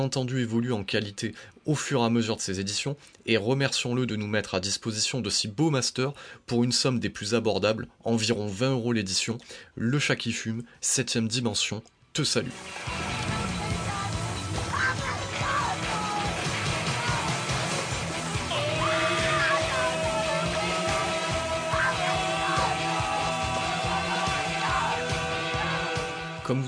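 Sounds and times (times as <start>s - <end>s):
speech: 0.0s - 13.4s, 26.5s - 26.6s
screaming woman in a jingle: 14.7s - 17.6s, 18.5s - 26.1s
chainsaw noise in a jingle: 15.9s - 26.4s.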